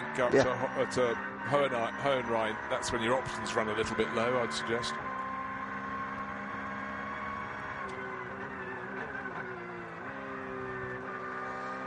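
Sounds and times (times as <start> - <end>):
onboard Porsche race car engine droning: 0.0 - 11.8
speech: 0.2 - 5.1.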